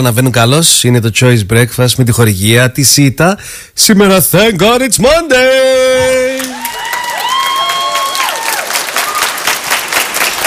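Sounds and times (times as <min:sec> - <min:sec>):
speech: 0:00.0 - 0:06.3
audience applause: 0:06.2 - 0:10.4.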